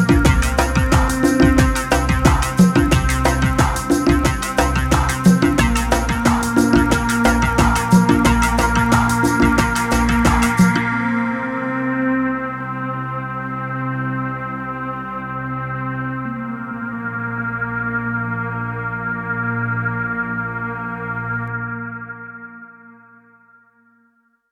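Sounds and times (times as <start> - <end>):
strings playing an interlude: 0.0 - 21.6.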